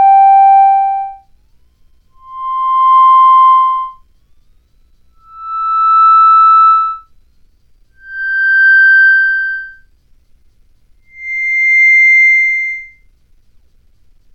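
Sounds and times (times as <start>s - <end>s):
theremin: 0.0s - 7.1s, 8.0s - 9.9s, 11.0s - 13.0s.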